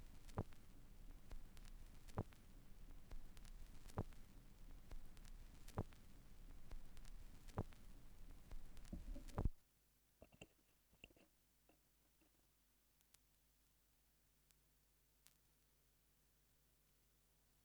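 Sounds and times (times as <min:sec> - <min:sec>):
vinyl record noise: 0:00.0 - 0:09.6.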